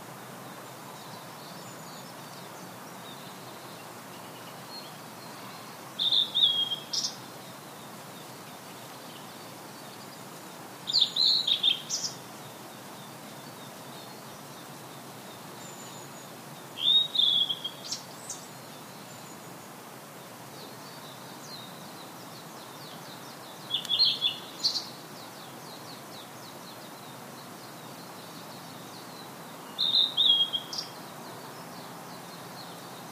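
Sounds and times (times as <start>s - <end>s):
background hiss: 0.0s - 33.1s
blue-and-white flycatcher singing whistled phrases: 6.0s - 6.9s, 16.8s - 17.9s, 29.8s - 30.9s.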